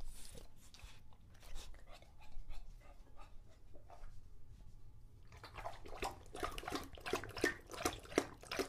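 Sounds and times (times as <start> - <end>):
English Bulldog lapping water: 5.3 - 8.6.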